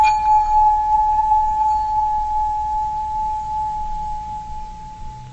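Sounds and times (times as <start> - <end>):
high-pitched tone: 0.2 - 5.3.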